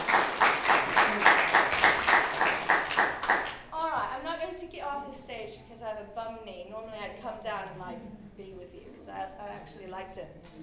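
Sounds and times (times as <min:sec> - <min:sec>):
rhythmic audience applause: 0:00.0 - 0:03.7
speech: 0:06.8 - 0:10.6.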